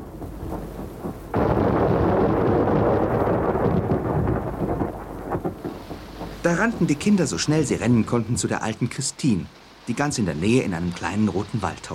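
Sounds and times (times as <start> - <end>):
thunderstorm thunder: 0.0 - 7.0
speech: 6.4 - 11.9.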